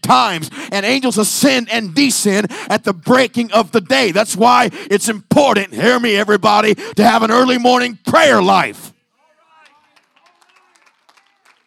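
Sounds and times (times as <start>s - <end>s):
speech: 0.1s - 8.9s
scattered audience claps: 9.4s - 11.6s.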